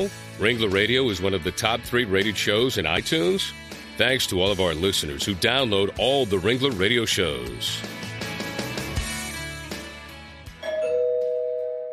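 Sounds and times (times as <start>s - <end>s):
speech: 0.0s - 8.1s
doorbell two-note ding-dong chime: 10.6s - 11.9s.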